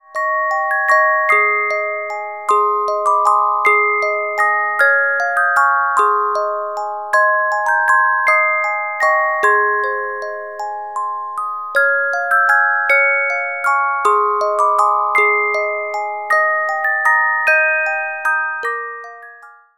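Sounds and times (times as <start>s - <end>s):
carillon music box melodies: 0.0s - 19.7s.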